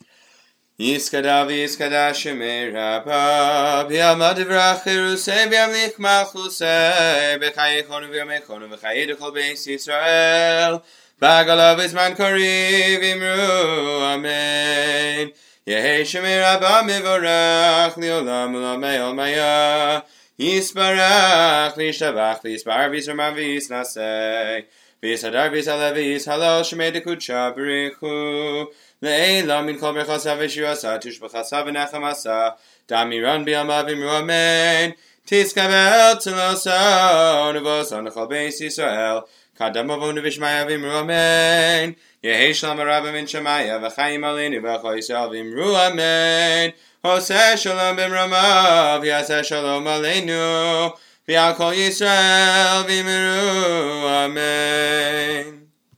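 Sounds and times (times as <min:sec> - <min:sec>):
person reciting a prayer: 0:00.8 - 0:55.7.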